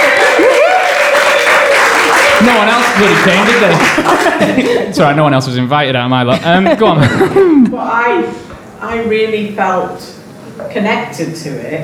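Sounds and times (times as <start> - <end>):
crowd applauding: 0.0 - 4.9
laughter: 0.0 - 5.2, 6.2 - 7.9
speech: 2.4 - 11.8.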